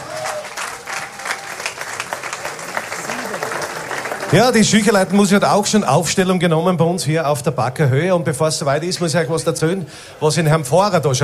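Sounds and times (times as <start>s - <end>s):
audience applause: 0.0s - 5.8s
speech: 4.3s - 11.2s.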